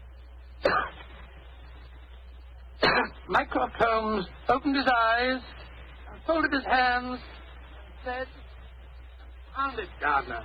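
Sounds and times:
discreet cough: 0.6s - 1.2s, 2.8s - 3.2s
speech: 3.3s - 5.6s, 6.3s - 7.3s, 8.0s - 8.4s, 9.6s - 10.4s.

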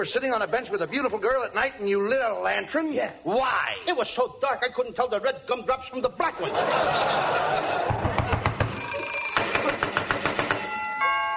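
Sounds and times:
speech: 0.0s - 8.1s
laughter: 6.2s - 8.8s
doorbell ringing: 8.5s - 11.3s.

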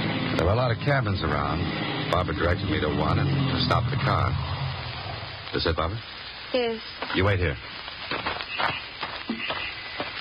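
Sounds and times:
constant hiss: 0.0s - 10.1s
speech: 0.4s - 4.6s, 5.5s - 9.5s
footsteps walking up a path and porch stairs: 7.0s - 10.1s.

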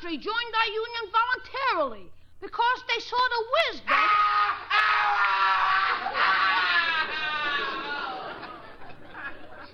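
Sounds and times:
speech: 0.1s - 5.2s
person screaming in a cellar: 3.9s - 8.0s
laughter: 6.0s - 9.7s.

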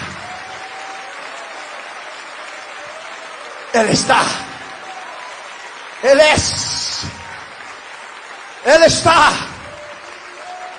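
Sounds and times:
audience applauding: 0.0s - 10.7s
speech: 3.7s - 4.5s, 6.0s - 7.1s, 8.7s - 9.5s.

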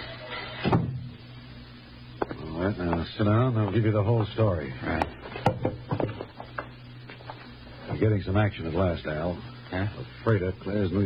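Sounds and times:
door shutting thud: 0.6s - 1.0s
speech: 2.7s - 5.8s, 8.0s - 11.0s.

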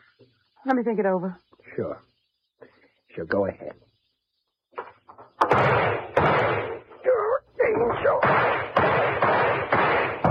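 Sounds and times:
speech: 0.6s - 2.1s, 3.2s - 3.9s
gunshots from a gun: 5.4s - 7.1s, 7.7s - 10.2s.

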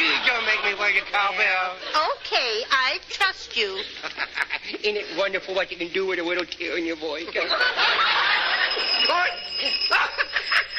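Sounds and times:
laughter: 0.0s - 2.3s, 3.6s - 4.9s, 7.2s - 10.7s
speech: 0.9s - 8.4s, 9.0s - 10.7s
doorbell ringing continuously: 7.9s - 10.7s.

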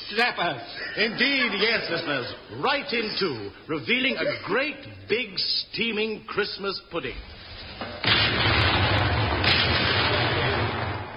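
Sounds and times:
speech: 0.1s - 8.7s
laughter: 0.5s - 3.2s
artillery guns firing: 8.0s - 11.1s.

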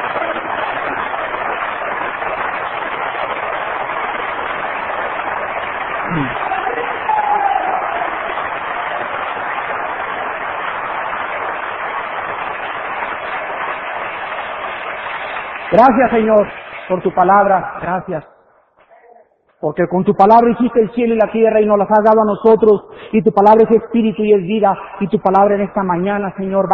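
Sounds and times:
audience applause: 0.0s - 17.5s
speech: 15.8s - 18.3s, 19.6s - 26.7s.

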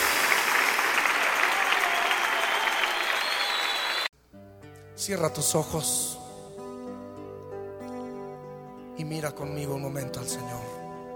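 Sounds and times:
audience clapping hands: 0.0s - 4.1s
speech: 5.0s - 6.1s, 9.0s - 10.8s.

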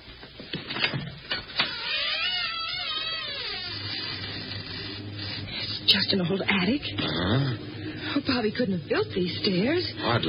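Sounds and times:
door opening: 0.7s - 5.8s
speech: 5.9s - 10.2s.

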